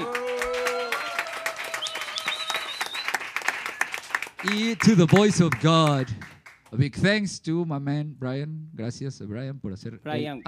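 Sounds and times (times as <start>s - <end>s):
audience applause: 0.0s - 6.6s
speech: 4.4s - 10.4s.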